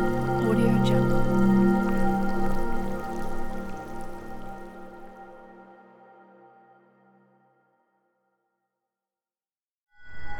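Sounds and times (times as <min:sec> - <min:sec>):
haunted forest ambience: 0:00.0 - 0:06.0.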